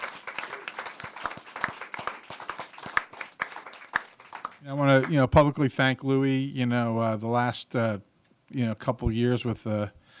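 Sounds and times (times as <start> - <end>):
applause: 0.0 - 5.2
speech: 4.6 - 10.0.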